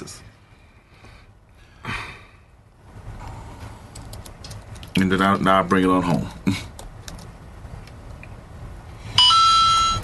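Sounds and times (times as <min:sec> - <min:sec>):
speech: 0:05.0 - 0:06.7
phone notification alerts: 0:09.2 - 0:10.0.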